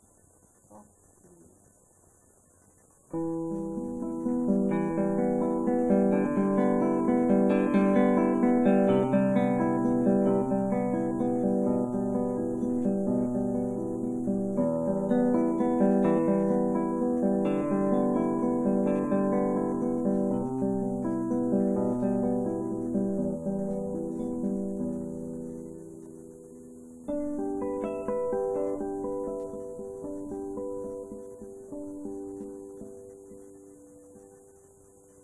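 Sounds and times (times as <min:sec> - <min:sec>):
soft guitar piece: 0:03.1 - 0:35.2.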